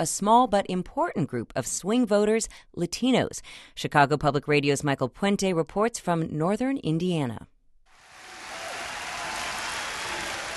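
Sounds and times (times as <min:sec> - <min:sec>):
speech: 0:00.0 - 0:07.5
cheering crowd in Indiana: 0:08.0 - 0:10.5.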